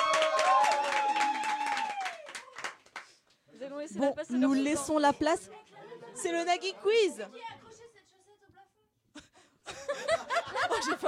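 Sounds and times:
voices whooping and calling out: 0:00.0 - 0:02.4
small group applauding: 0:00.0 - 0:03.5
speech: 0:03.9 - 0:07.5, 0:10.8 - 0:11.0
laughter: 0:05.8 - 0:06.6, 0:09.2 - 0:11.0.

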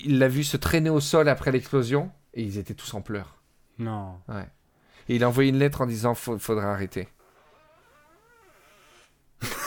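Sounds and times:
speech: 0:00.0 - 0:07.2
chair creaking: 0:07.2 - 0:09.2.

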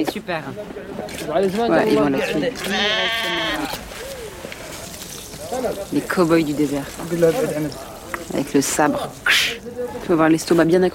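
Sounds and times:
speech: 0:00.0 - 0:04.1, 0:05.5 - 0:10.9
sheep bleating at a Bedouin camp: 0:02.2 - 0:03.8.

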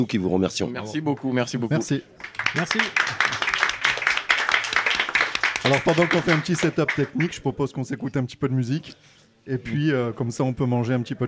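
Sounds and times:
speech: 0:00.0 - 0:03.2, 0:05.6 - 0:11.2
audience applause: 0:02.2 - 0:07.4.

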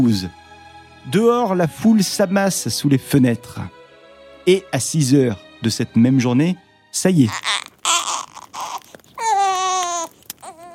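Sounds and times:
speech: 0:00.0 - 0:00.4, 0:01.0 - 0:03.8, 0:04.4 - 0:07.5
newborn baby crying: 0:07.2 - 0:10.7.

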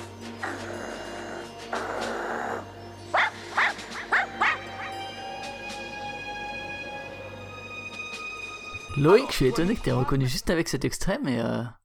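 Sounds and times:
dog growling: 0:00.4 - 0:02.7
dog barking: 0:03.1 - 0:04.9
speech: 0:09.0 - 0:11.8.

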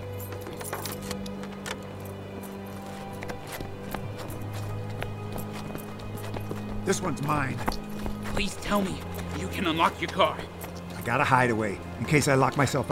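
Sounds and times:
keys being set down: 0:00.0 - 0:03.6
speech: 0:06.9 - 0:07.8, 0:08.4 - 0:12.9.

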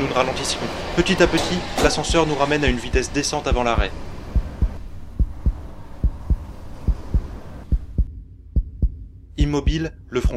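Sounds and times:
speech: 0:00.1 - 0:04.1, 0:09.5 - 0:10.3
heartbeat: 0:02.1 - 0:02.3, 0:02.9 - 0:10.3.

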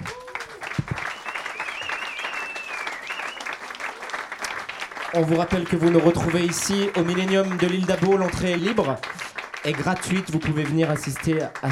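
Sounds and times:
faint cheer: 0:00.0 - 0:04.4
audience applauding: 0:00.0 - 0:11.7
whistle: 0:00.9 - 0:03.6
speech: 0:05.1 - 0:11.7.

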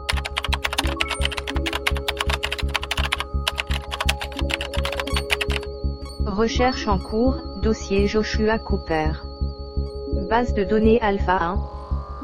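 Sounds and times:
rapid typing of a search on a computer keyboard: 0:00.0 - 0:06.2
speech: 0:06.4 - 0:09.3, 0:10.1 - 0:11.8.

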